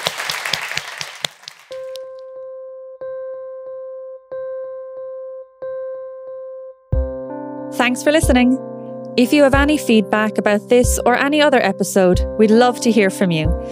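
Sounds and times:
audience applause: 0:00.0 - 0:02.0
speech: 0:07.8 - 0:13.7.

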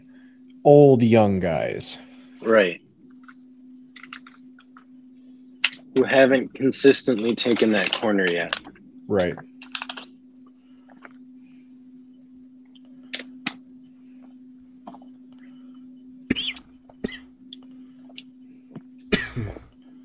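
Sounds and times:
low electrical hum: 0:00.0 - 0:20.0
speech: 0:00.6 - 0:02.8, 0:06.0 - 0:09.5
person coughing from choking: 0:16.3 - 0:17.3, 0:19.1 - 0:19.7.

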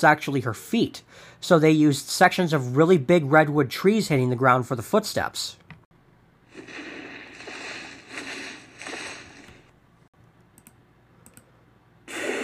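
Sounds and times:
speech: 0:00.0 - 0:05.6
whale blowhole breathing: 0:06.5 - 0:09.7.

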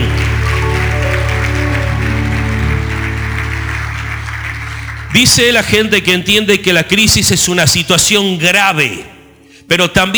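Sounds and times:
audience applauding: 0:00.0 - 0:06.6
speech: 0:05.2 - 0:09.1, 0:09.7 - 0:10.1.

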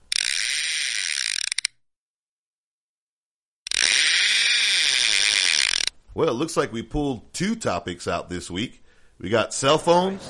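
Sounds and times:
fishing reel being cast and reeled: 0:00.0 - 0:01.8, 0:03.7 - 0:06.0
speech: 0:06.2 - 0:10.2.

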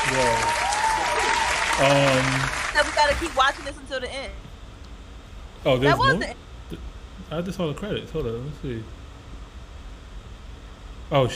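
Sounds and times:
round of applause: 0:00.0 - 0:03.8
speech: 0:01.8 - 0:04.4, 0:05.6 - 0:09.0, 0:11.1 - 0:11.3.

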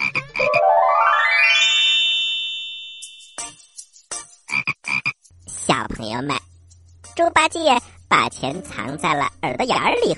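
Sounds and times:
cartoon-style frog croaking: 0:00.0 - 0:00.7
bright tone sweeping upward: 0:00.4 - 0:03.5
speech: 0:06.0 - 0:06.5, 0:07.2 - 0:10.1.

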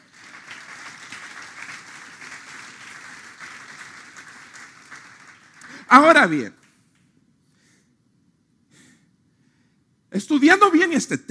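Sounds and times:
audience applause: 0:00.0 - 0:06.2
speech: 0:05.9 - 0:06.6, 0:10.2 - 0:11.2.

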